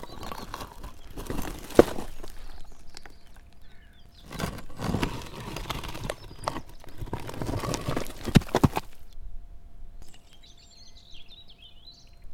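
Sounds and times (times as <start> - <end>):
stones: 0.0 - 3.5, 4.2 - 9.1.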